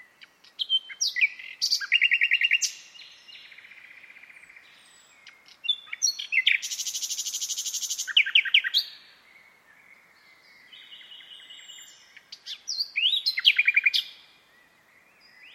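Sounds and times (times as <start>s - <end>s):
bird chirping high thin notes: 0.0s - 15.5s.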